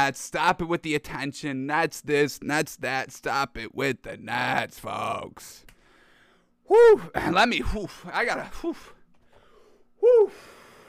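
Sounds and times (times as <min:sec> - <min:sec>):
speech: 0:00.0 - 0:05.7, 0:06.7 - 0:09.0, 0:10.0 - 0:10.6
person catching their breath with loud voiced gasps: 0:09.3 - 0:10.8.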